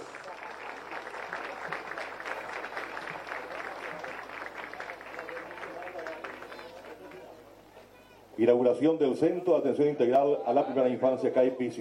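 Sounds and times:
audience applause: 0.0s - 7.5s
speech: 8.4s - 11.8s.

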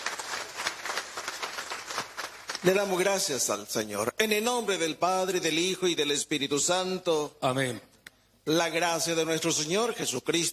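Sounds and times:
applause: 0.0s - 3.4s
speech: 2.6s - 7.9s, 8.5s - 10.5s.

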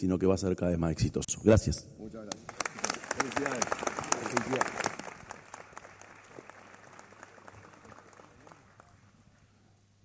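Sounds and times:
speech: 0.0s - 2.4s, 3.2s - 4.9s
audience applause: 2.3s - 9.4s.

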